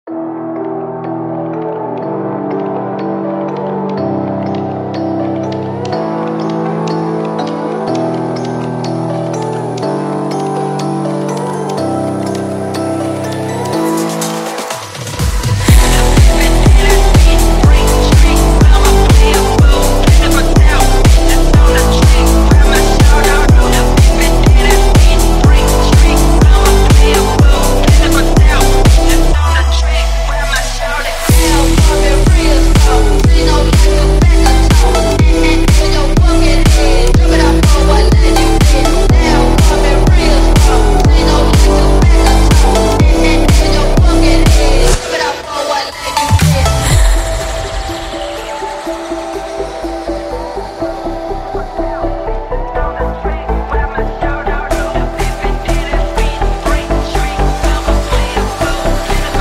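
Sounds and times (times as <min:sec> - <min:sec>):
chill phonk music: 0:00.0 - 0:59.3.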